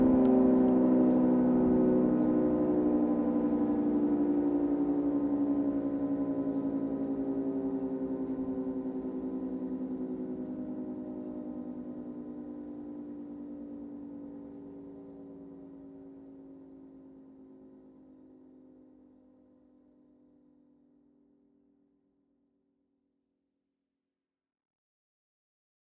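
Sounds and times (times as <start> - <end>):
fire siren: 0.0 - 19.0.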